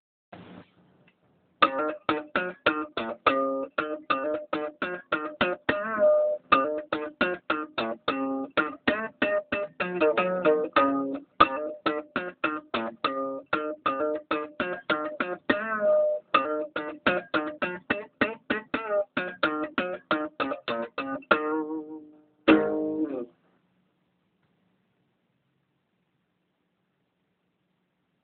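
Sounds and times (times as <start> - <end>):
guitar improvisation: 1.6 - 23.3.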